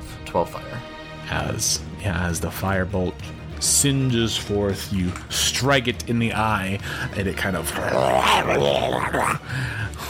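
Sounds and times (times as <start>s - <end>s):
speech: 0.3s - 9.8s
voice imitating a low guttural creature growl: 7.6s - 9.4s.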